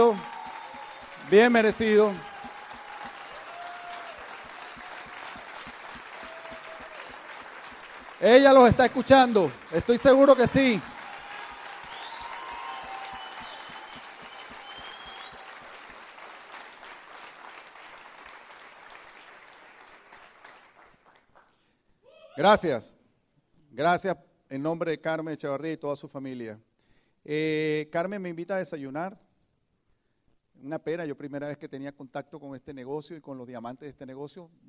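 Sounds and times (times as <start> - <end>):
audience applause: 0.0 - 21.4
speech: 1.3 - 2.3, 8.2 - 10.9, 22.4 - 23.0, 23.7 - 29.2, 30.6 - 34.6.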